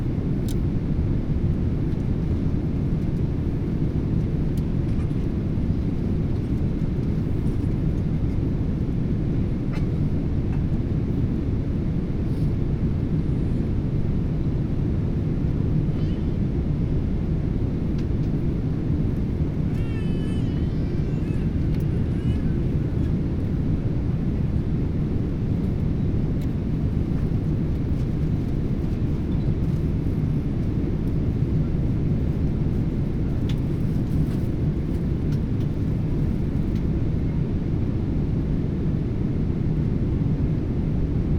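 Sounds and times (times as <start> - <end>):
Boeing 777 inflight cabin ambience: 0.0 - 41.3.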